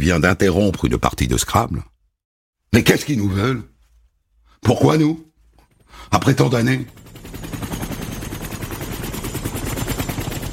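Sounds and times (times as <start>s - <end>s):
speech: 0.0s - 1.9s, 2.7s - 3.7s, 4.6s - 5.3s, 5.9s - 7.0s
helicopter rotor thumping: 5.5s - 10.5s.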